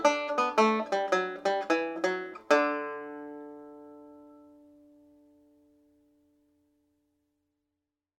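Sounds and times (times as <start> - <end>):
slow banjo reel: 0.0 - 4.9.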